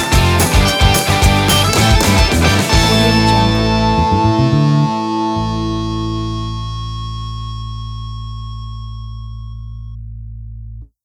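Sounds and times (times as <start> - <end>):
party pop rock music: 0.0 - 7.2.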